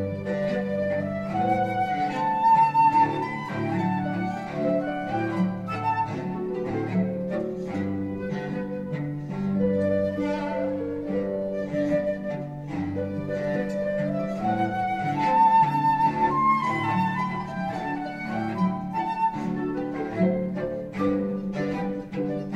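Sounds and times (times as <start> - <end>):
cello: 0.0 - 22.5
flute: 0.0 - 22.5
harp: 0.0 - 22.5.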